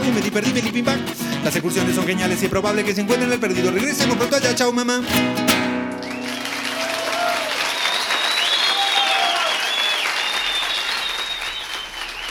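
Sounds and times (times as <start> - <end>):
speech: 0.2 - 5.6
audience applause: 5.8 - 12.2.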